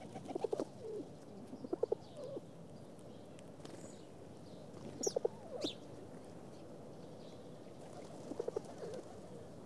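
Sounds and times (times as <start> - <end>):
feeding pigeon giving short low coos: 0.2 - 2.4, 8.0 - 9.4.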